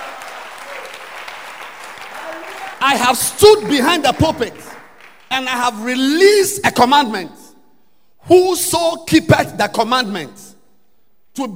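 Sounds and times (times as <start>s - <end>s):
audience clapping hands: 0.0s - 5.8s
speech: 2.8s - 4.7s, 5.3s - 7.4s, 8.3s - 10.4s, 11.4s - 11.5s.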